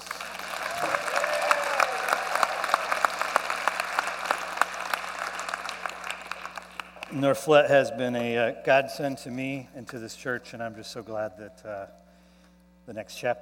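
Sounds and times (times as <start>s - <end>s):
audience clapping: 0.0s - 7.5s
speech: 7.1s - 12.0s, 12.9s - 13.4s.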